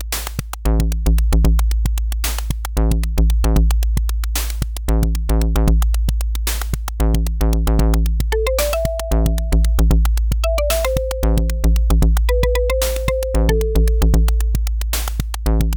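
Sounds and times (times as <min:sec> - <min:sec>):
light swing music on OPL FM synth: 0:00.5 - 0:15.7.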